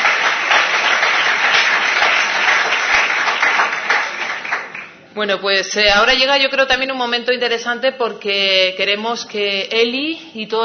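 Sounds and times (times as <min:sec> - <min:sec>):
audience applause: 0:00.0 - 0:04.9
speech: 0:05.2 - 0:10.6.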